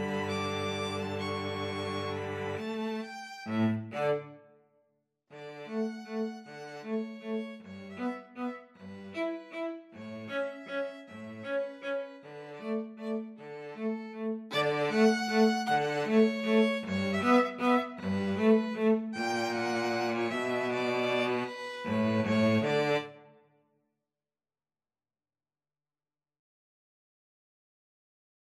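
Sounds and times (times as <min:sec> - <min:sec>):
string trio playing a waltz: 0:00.0 - 0:04.4, 0:05.4 - 0:23.2.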